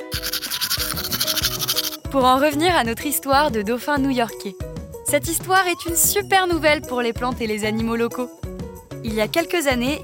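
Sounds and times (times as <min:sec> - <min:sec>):
toothbrush scrubbing teeth: 0:00.0 - 0:02.1
speech: 0:02.1 - 0:10.0.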